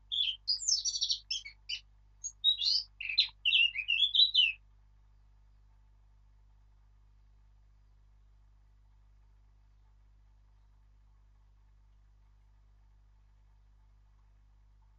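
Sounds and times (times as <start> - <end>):
Sylvia atricapilla: 0.0 - 4.6.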